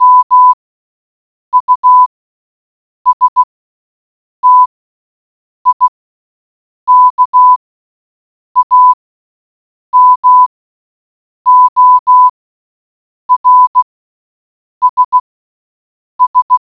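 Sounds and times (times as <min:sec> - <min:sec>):
morse code beeps: 0:00.0 - 0:00.6, 0:01.6 - 0:02.1, 0:03.1 - 0:03.5, 0:04.4 - 0:04.7, 0:05.7 - 0:05.9, 0:06.9 - 0:07.6, 0:08.6 - 0:09.0, 0:10.0 - 0:10.5, 0:11.5 - 0:12.3, 0:13.3 - 0:13.9, 0:14.8 - 0:15.2, 0:16.2 - 0:16.6.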